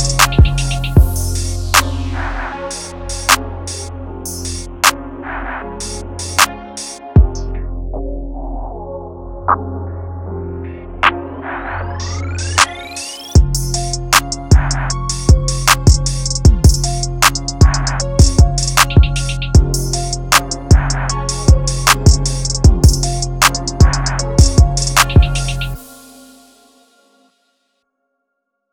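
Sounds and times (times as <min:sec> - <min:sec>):
drum kit: 0:00.0 - 0:02.1, 0:02.7 - 0:05.0, 0:05.8 - 0:07.4, 0:13.4 - 0:25.8.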